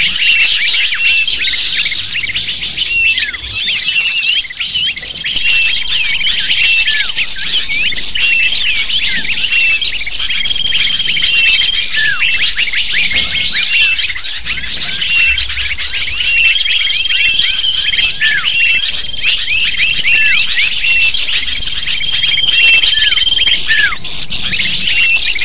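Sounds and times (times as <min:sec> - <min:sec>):
faint steady whistles: 0:00.0 - 0:25.4
lovebird flock chatter: 0:00.0 - 0:25.4.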